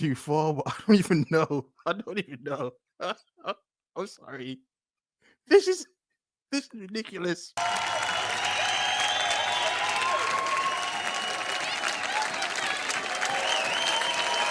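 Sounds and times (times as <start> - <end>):
speech: 0.0 - 4.7, 5.5 - 8.0
audience clapping: 7.6 - 14.4.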